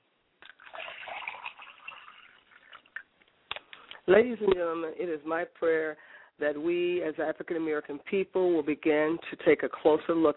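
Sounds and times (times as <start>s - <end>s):
liquid poured as libation: 0.4s - 3.1s
speech: 4.1s - 10.3s.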